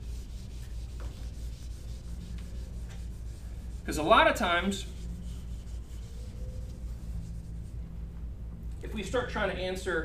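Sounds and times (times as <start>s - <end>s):
eraser rubbing writing from a board: 0.0s - 4.0s, 4.6s - 7.7s
speech: 3.9s - 5.0s, 9.0s - 10.0s.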